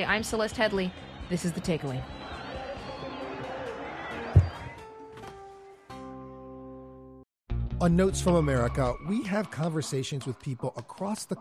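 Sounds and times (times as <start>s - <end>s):
speech: 0.0s - 2.2s, 7.8s - 11.3s
crowd shouting and murmuring at a Cairo protest: 0.1s - 5.0s
sudden thump: 4.4s - 4.7s.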